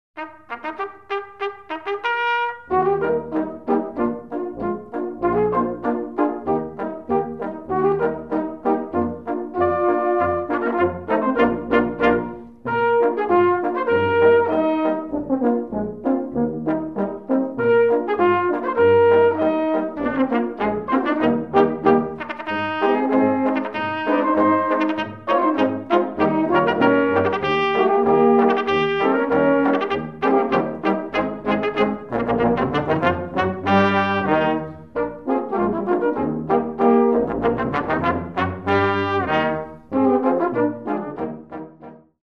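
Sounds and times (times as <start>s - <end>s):
polka music: 0.2s - 42.2s.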